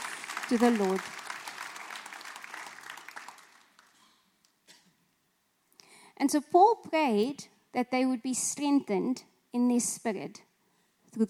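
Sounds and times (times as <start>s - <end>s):
audience applause: 0.0s - 4.1s
speech: 0.5s - 1.2s, 6.2s - 10.5s.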